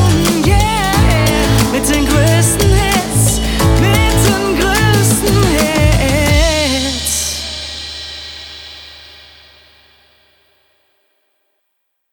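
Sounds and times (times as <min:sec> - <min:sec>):
90 BPM jingle music: 0:00.0 - 0:07.8.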